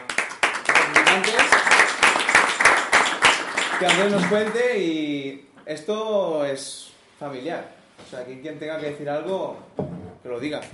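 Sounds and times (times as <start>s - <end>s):
audience applause: 0.0s - 4.6s
speech: 3.8s - 10.7s.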